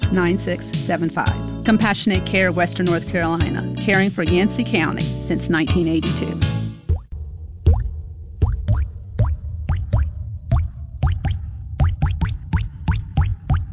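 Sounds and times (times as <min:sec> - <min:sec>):
speech: 0:00.1 - 0:06.5
water dripping from a plumbing leak: 0:08.4 - 0:13.7.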